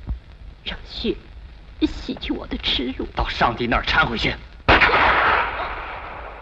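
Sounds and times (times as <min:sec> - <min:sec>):
speech: 0:00.9 - 0:04.5
gunshot: 0:04.7 - 0:06.4.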